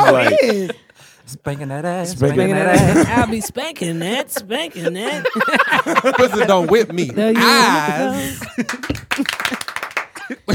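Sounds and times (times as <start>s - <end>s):
laughter: 0.0s - 1.0s, 2.6s - 10.5s
speech: 0.4s - 9.5s
hand claps: 8.4s - 10.5s.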